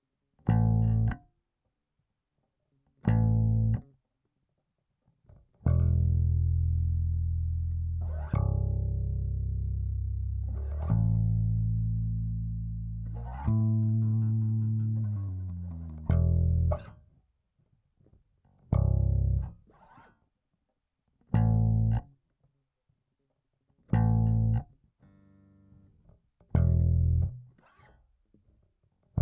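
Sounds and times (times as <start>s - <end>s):
bass through 1176 compressor: 0.0s - 1.4s, 2.9s - 4.0s, 5.1s - 17.2s, 18.1s - 20.2s, 21.2s - 22.2s, 23.8s - 29.2s.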